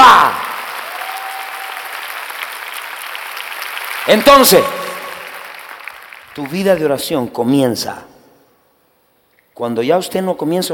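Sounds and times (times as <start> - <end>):
audience applause: 0.0 - 6.8
speech: 4.1 - 4.8, 6.4 - 8.1, 9.6 - 10.7.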